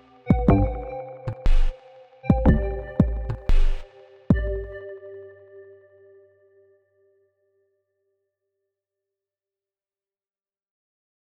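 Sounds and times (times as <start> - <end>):
dark gloomy hip-hop beat: 0.0 - 4.8.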